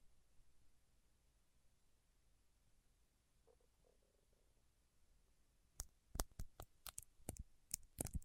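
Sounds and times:
fingertips working at wax: 5.8 - 8.2
sharp clicks: 5.8 - 8.2.

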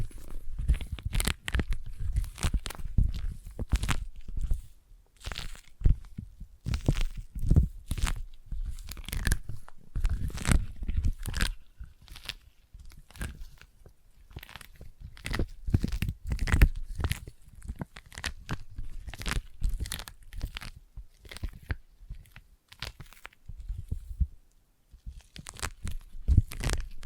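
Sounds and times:
sticky tapping and peeling: 0.0 - 24.3, 24.9 - 27.0.

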